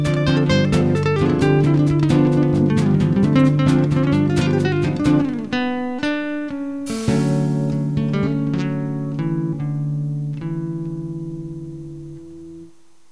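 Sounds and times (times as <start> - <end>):
guitar: 0.0 - 13.1.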